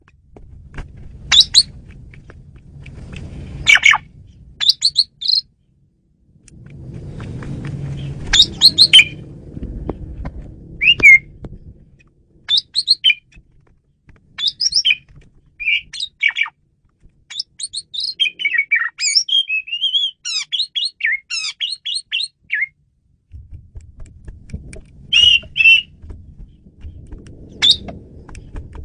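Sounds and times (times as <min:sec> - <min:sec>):
low rumbling background noise: 0:00.0 - 0:14.4, 0:22.8 - 0:28.8
Asian pied starling calling: 0:01.3 - 0:01.7, 0:03.6 - 0:05.5, 0:07.9 - 0:09.2, 0:10.8 - 0:11.3, 0:12.4 - 0:13.4, 0:14.4 - 0:16.6, 0:17.3 - 0:22.7, 0:25.1 - 0:26.0, 0:27.5 - 0:27.9.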